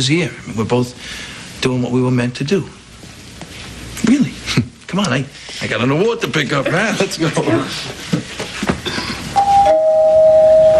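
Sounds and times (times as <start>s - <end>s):
speech: 0.0s - 2.8s, 4.1s - 8.3s
rustling and knocks: 7.9s - 9.1s
two-note doorbell chime: 9.4s - 10.7s.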